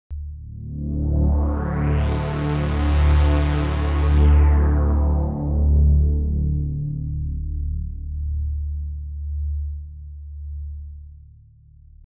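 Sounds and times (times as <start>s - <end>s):
effect synth pad: 0.2s - 9.6s.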